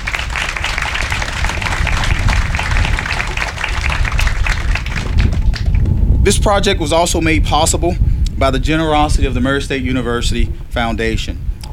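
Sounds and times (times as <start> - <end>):
audience applause: 0.0 - 5.9
speech: 6.3 - 11.7.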